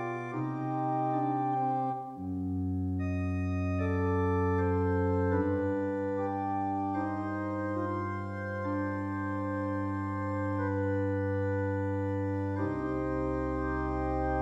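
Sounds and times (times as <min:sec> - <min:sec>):
voluntary played on a new organ: 0:00.0 - 0:14.4.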